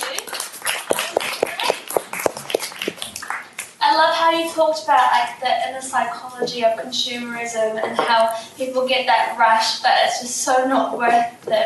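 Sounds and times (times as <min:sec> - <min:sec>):
audience applause: 0:00.0 - 0:03.7
speech: 0:04.0 - 0:11.6.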